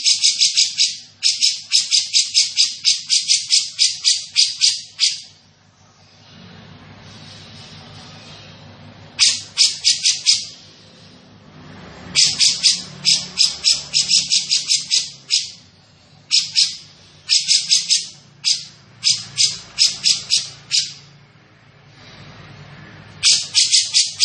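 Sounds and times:
grey-cheeked bulbul chattering: 0.0 - 5.4, 9.2 - 10.7, 12.1 - 15.7, 16.3 - 21.1, 23.2 - 24.2.

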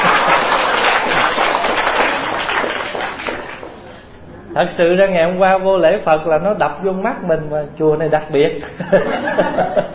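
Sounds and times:
audience applauding during a Buddhist dharma talk: 0.0 - 3.9
speech: 4.6 - 9.9
laughter: 8.6 - 9.9.

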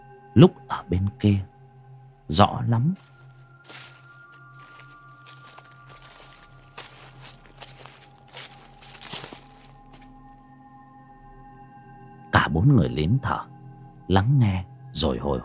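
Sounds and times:
speech: 0.4 - 1.5, 2.3 - 3.8, 12.6 - 13.5, 14.1 - 15.4
footsteps on dry leaves: 3.0 - 10.2.

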